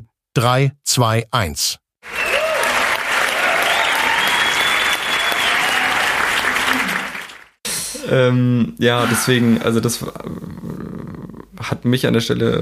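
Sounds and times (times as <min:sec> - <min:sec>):
speech: 0:00.4 - 0:02.2, 0:08.0 - 0:11.0, 0:11.6 - 0:12.6
celebratory crowd applause and cheering effect: 0:02.0 - 0:07.6
whoops and whistles: 0:02.1 - 0:06.3.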